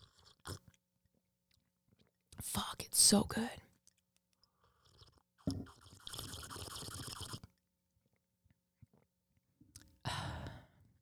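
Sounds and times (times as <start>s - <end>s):
hot cocoa slurped close to the microphone: 0.0s - 0.7s, 4.6s - 7.5s
speech: 2.6s - 3.6s.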